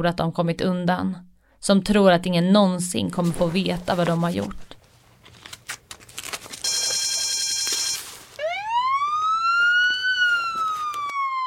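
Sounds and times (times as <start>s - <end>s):
speech: 0.0s - 4.8s
harsh ringing alarm bells: 6.6s - 8.2s
police siren wailing with a steady rising tone: 8.4s - 11.4s.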